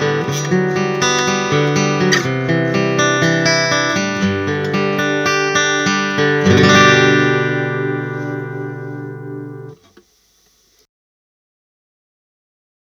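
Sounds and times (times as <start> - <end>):
guitar picking line on microphone: 0.0 - 9.9.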